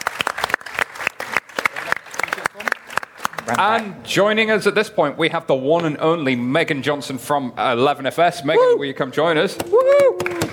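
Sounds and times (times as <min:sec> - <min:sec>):
audience round of applause: 0:00.0 - 0:03.9, 0:09.8 - 0:10.5
speech: 0:03.5 - 0:10.5.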